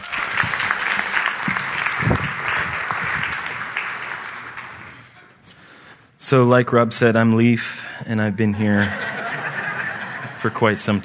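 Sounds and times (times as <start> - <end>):
audience applause at a church service welcoming a speaker: 0.0 - 5.2
speech: 6.3 - 9.1, 10.4 - 11.0
laughter: 8.6 - 11.0.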